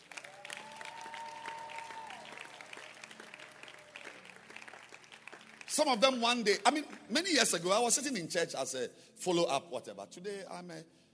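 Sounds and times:
audience applauding for the choir: 0:00.0 - 0:07.4
speech: 0:05.8 - 0:11.0.

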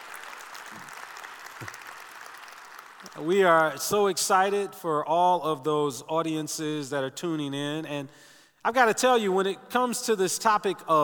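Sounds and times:
audience applause: 0:00.0 - 0:03.3
speech: 0:03.1 - 0:11.0.

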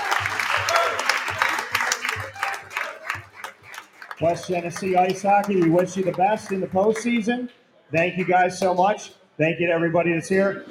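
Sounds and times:
faint cheering: 0:00.0 - 0:03.6
crowd applauding: 0:00.0 - 0:07.5
speech: 0:04.2 - 0:10.6.

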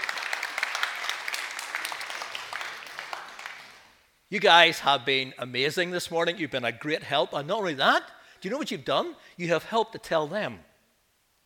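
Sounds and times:
audience clapping and cheering: 0:00.0 - 0:04.0
speech: 0:04.3 - 0:10.7.

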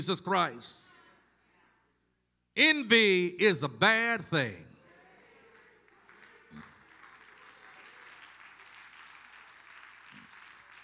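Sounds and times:
speech: 0:00.0 - 0:01.0, 0:02.6 - 0:04.7
audience clapping: 0:05.5 - 0:10.8.

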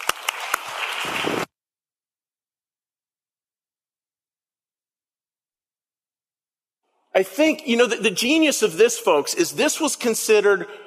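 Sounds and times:
audience round of applause: 0:00.0 - 0:01.5
speech: 0:07.2 - 0:10.8.

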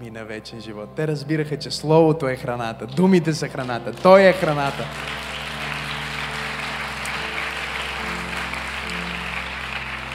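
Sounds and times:
speech: 0:00.0 - 0:05.3
low sustained musical tones: 0:00.0 - 0:10.1
audience clapping: 0:03.5 - 0:10.1.

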